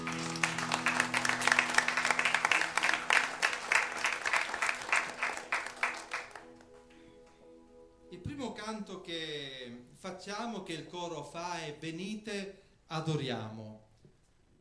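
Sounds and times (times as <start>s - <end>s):
audience applause: 0.0s - 6.6s
speech: 8.7s - 13.8s.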